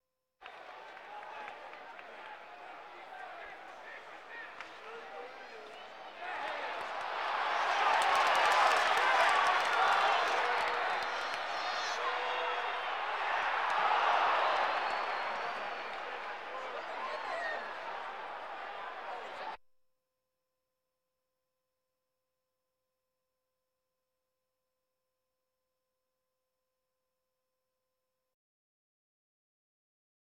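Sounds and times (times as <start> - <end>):
sports crowd: 0.4 - 19.6.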